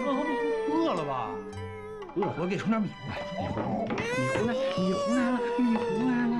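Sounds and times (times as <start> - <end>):
infant crying loudly: 0.0 - 2.2, 3.9 - 6.3
speech: 0.9 - 6.3.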